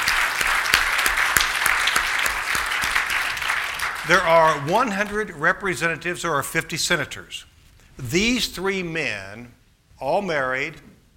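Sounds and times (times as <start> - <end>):
audience applause: 0.0 - 5.2
speech: 4.0 - 10.9.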